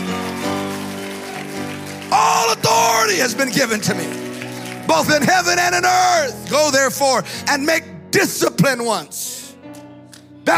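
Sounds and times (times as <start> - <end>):
crowd clapping: 0.0 - 6.8
speech: 2.5 - 4.3, 4.9 - 9.4.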